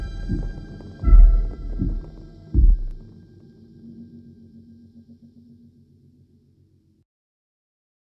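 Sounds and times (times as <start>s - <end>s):
slow horror sci-fi suspense music: 0.0s - 7.0s.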